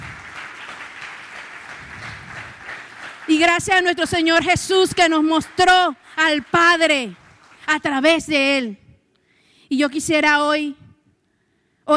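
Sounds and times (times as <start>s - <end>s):
applause: 0.0s - 8.1s
speech: 3.3s - 8.8s, 9.7s - 10.8s.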